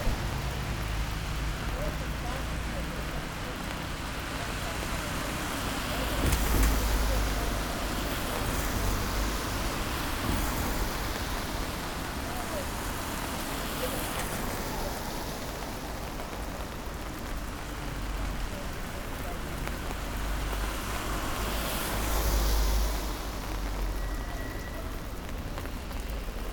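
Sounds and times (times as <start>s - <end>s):
rain: 0.0s - 26.5s
traffic: 0.0s - 26.5s.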